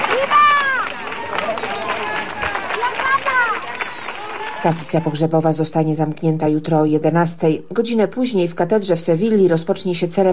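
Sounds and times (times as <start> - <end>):
crowd applauding in street: 0.0 - 5.2
speech: 4.6 - 10.3.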